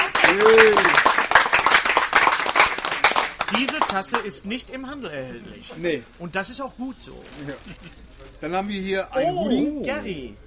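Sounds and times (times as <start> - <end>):
crowd clapping: 0.0 - 4.4
speech: 0.3 - 1.2, 3.6 - 10.4.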